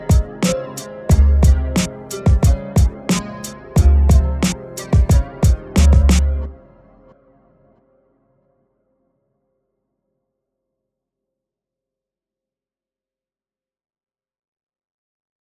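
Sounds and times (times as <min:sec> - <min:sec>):
underground instrumental rap beat: 0:00.0 - 0:06.5.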